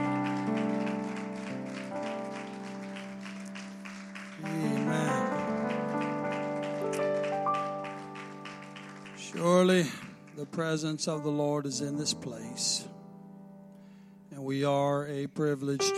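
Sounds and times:
audience clapping hands in praise: 0:00.0 - 0:11.0
speech: 0:09.4 - 0:13.0, 0:14.5 - 0:15.9.

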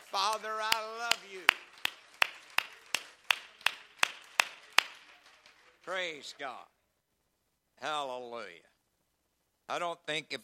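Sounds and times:
audience clapping hands: 0:00.0 - 0:06.5
speech: 0:00.1 - 0:01.7, 0:05.9 - 0:06.8, 0:07.8 - 0:08.7, 0:09.7 - 0:10.4.

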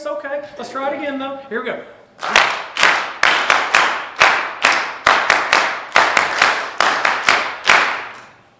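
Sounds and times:
speech: 0:00.0 - 0:02.4
audience clapping hands: 0:02.2 - 0:08.3.

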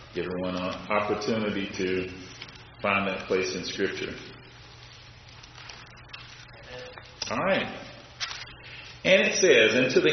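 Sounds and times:
speech: 0:00.2 - 0:04.4, 0:07.3 - 0:07.8, 0:09.0 - 0:10.1
Bible pages turning: 0:05.2 - 0:07.4, 0:08.1 - 0:08.9.

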